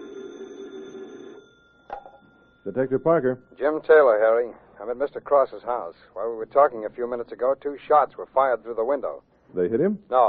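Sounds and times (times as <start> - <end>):
telephone ringing: 0.0 - 5.6
speech: 2.6 - 10.2.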